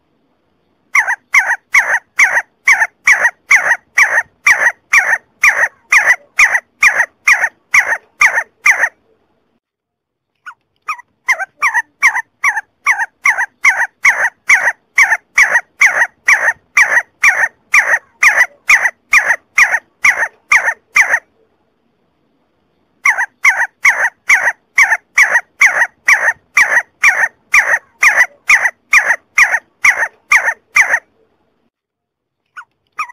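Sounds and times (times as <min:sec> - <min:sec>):
See-see partridge harsh calls: 0:00.9 - 0:09.0, 0:10.4 - 0:21.3, 0:23.0 - 0:31.1, 0:32.5 - 0:33.1.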